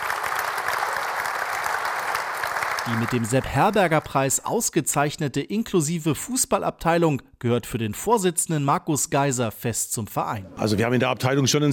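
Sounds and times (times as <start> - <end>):
audience applause: 0.0 - 4.4
speech: 2.8 - 11.7.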